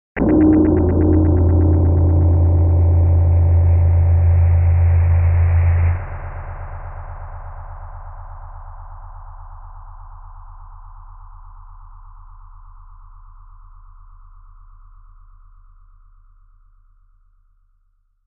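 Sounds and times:
electric pulse impact: 0.2s - 6.0s.

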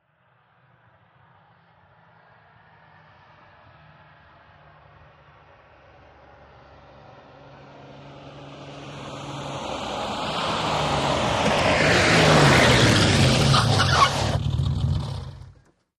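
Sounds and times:
Aston Martin approaching fast: 0.6s - 15.8s
Aston Martin tyres squealing: 12.2s - 15.5s
Aston Martin engine switching off: 12.6s - 15.8s.

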